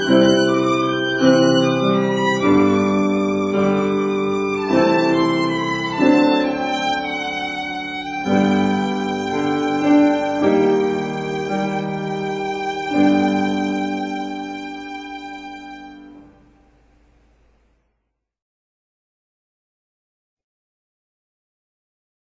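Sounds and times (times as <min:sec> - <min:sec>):
violin at a wedding ceremony: 0:00.0 - 0:17.0
piano at a wedding ceremony: 0:00.0 - 0:17.1.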